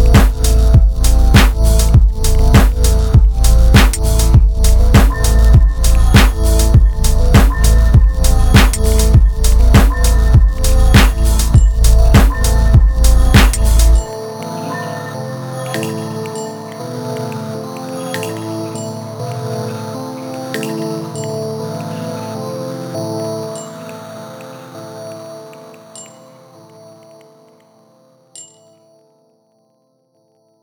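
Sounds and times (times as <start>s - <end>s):
kick drum: 0.0s - 14.1s
modulated bass: 0.0s - 14.1s.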